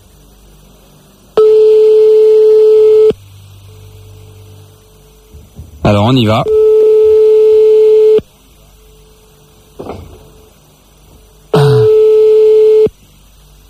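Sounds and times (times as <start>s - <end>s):
quiet telephone line hum: 0.0s - 13.6s
telephone ringback tone: 1.4s - 3.1s, 6.4s - 8.2s, 11.8s - 12.9s
speech: 5.9s - 6.6s.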